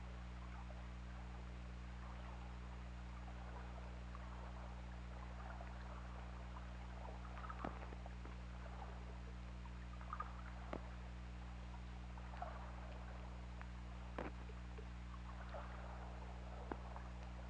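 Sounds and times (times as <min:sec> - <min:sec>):
low electrical hum: 0:00.0 - 0:17.4
sperm whale clicks: 0:05.3 - 0:11.1, 0:11.7 - 0:17.4.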